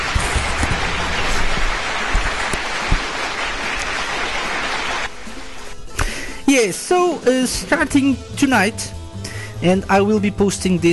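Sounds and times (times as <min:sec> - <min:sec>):
applause: 0:00.0 - 0:05.1
speech: 0:06.5 - 0:09.0, 0:09.6 - 0:10.9.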